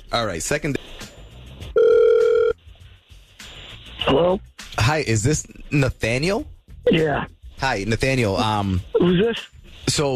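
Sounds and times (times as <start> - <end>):
speech: 0.1 - 1.0, 4.1 - 10.1
telephone ringback tone as a radio show calls a listener: 1.8 - 2.6.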